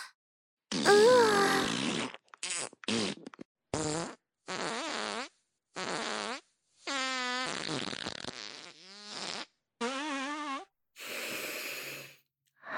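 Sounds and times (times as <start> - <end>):
fart: 0.7 - 10.7.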